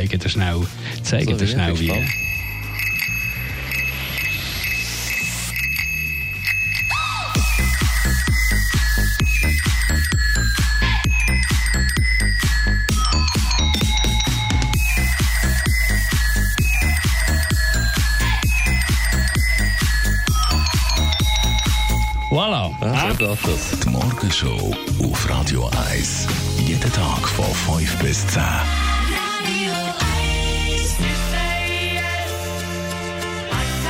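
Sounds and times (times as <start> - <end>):
speech: 0.0 - 2.5, 23.2 - 28.8
steady punchy beat like a musical jingle: 0.0 - 33.8
bright metallic bicycle bell ringing: 1.8 - 24.2.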